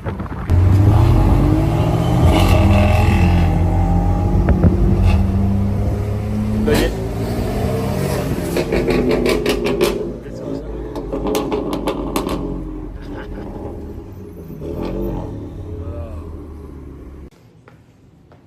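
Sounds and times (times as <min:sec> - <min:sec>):
wind buffeting the microphone: 0:00.0 - 0:02.7, 0:03.6 - 0:06.0
car engine revving: 0:00.5 - 0:17.3.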